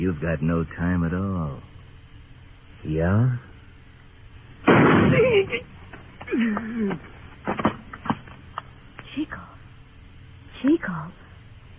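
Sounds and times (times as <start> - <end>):
speech: 0.0 - 1.7, 2.8 - 3.5, 4.7 - 7.7, 9.2 - 9.6, 10.6 - 11.2
gunshot in a Gunsmoke radio western drama: 4.6 - 5.4.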